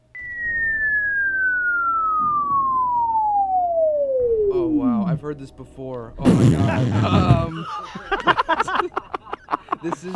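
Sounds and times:
whistle: 0.0s - 4.8s
speech: 5.3s - 9.1s, 9.8s - 10.1s
laughter: 6.4s - 10.1s.

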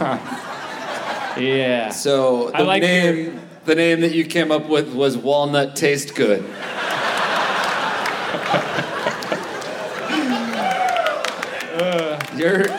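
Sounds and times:
speech: 0.0s - 0.3s, 1.4s - 6.8s, 12.4s - 12.7s
laughter: 0.0s - 1.6s, 6.2s - 12.7s
audience applause: 6.8s - 12.7s.

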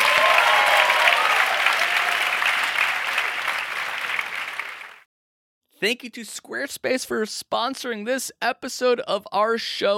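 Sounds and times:
audience round of applause: 0.0s - 5.1s
speech: 5.8s - 9.9s.

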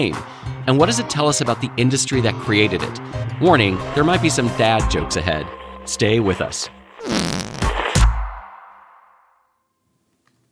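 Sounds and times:
speech: 0.0s - 7.3s
whoopee cushion fart noise: 7.0s - 8.1s.

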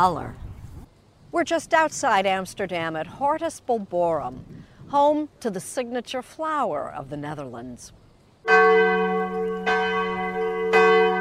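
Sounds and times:
speech: 0.0s - 0.4s, 1.3s - 9.8s
church bells ringing in the village of Limmen: 8.5s - 11.1s.

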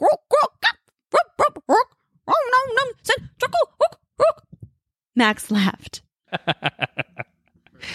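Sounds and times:
guttural barked goblin-style singing: 0.0s - 4.6s
speech: 5.2s - 6.0s
laughter: 6.3s - 7.4s.

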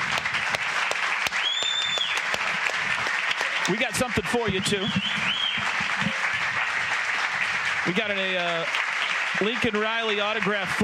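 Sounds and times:
standing ovation applause from a large crowd: 0.0s - 10.8s
high whistle: 1.3s - 2.2s, 4.6s - 5.7s
speech: 3.7s - 5.4s, 7.8s - 8.8s, 9.4s - 10.8s.

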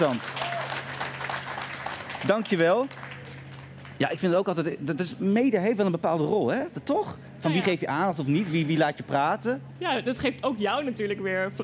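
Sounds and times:
speech: 0.0s - 0.4s, 2.2s - 3.0s, 4.0s - 11.6s
audience applause: 0.0s - 4.0s.

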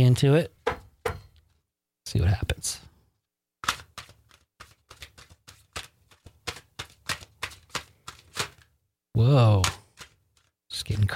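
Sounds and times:
speech: 0.1s - 0.6s, 2.1s - 2.9s, 9.2s - 9.8s, 10.8s - 11.1s
tarot cards being shuffled during a reading: 3.6s - 8.8s, 9.4s - 11.1s.

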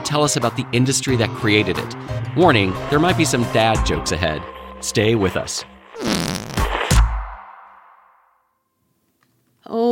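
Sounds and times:
speech: 0.1s - 6.3s
whoopee cushion deflating: 6.0s - 6.7s.

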